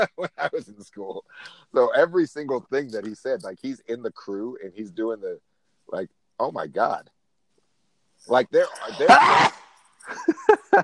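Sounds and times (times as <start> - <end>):
laughter: 0.0 - 1.2, 8.6 - 10.8
speech: 0.0 - 7.2, 8.2 - 10.8
person sneezing: 8.6 - 9.6.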